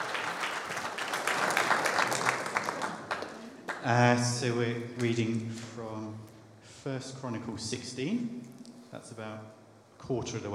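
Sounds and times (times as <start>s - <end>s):
audience applause: 0.0s - 3.9s
speech: 3.8s - 10.5s.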